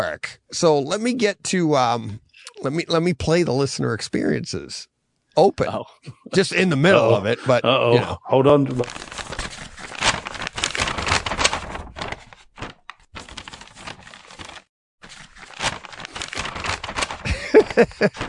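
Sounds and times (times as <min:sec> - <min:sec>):
speech: 0:00.0 - 0:09.3, 0:17.8 - 0:18.2
laughter: 0:05.7 - 0:08.8, 0:17.3 - 0:18.2
paper being crumpled: 0:08.8 - 0:18.2.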